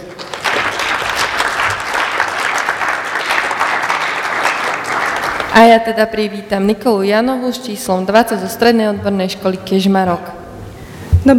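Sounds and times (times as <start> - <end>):
audience applause: 0.0 - 5.6
speech: 5.6 - 10.4.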